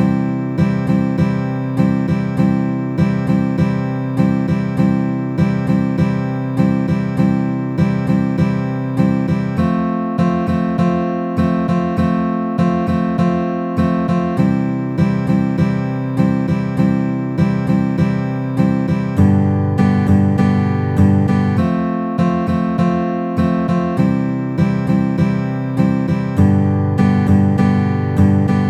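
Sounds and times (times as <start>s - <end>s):
12 bar blues in C at 100 bpm: 0.0s - 28.6s.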